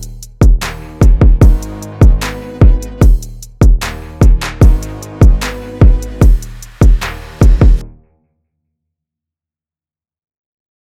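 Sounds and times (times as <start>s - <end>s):
urban beat in G sharp minor: 0.0s - 8.0s.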